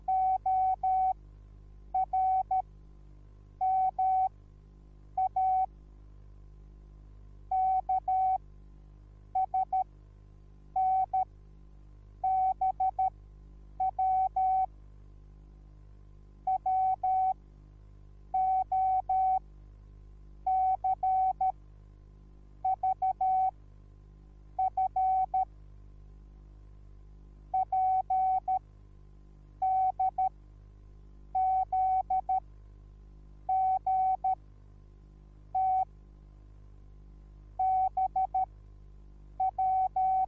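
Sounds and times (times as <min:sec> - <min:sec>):
morse code beeps: 0:00.1 - 0:01.2, 0:02.0 - 0:02.6, 0:03.6 - 0:04.3, 0:05.2 - 0:05.7, 0:07.5 - 0:08.4, 0:09.4 - 0:09.8, 0:10.8 - 0:11.2, 0:12.3 - 0:13.1, 0:13.8 - 0:14.7, 0:16.5 - 0:17.4, 0:18.4 - 0:19.4, 0:20.5 - 0:21.5, 0:22.7 - 0:23.5, 0:24.6 - 0:25.4, 0:27.6 - 0:28.6, 0:29.6 - 0:30.3, 0:31.4 - 0:32.4, 0:33.5 - 0:34.4, 0:35.6 - 0:35.9, 0:37.6 - 0:38.5, 0:39.4 - 0:40.2.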